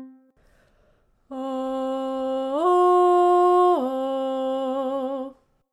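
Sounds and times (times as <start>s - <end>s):
person doing vocal exercises: 1.2s - 5.6s.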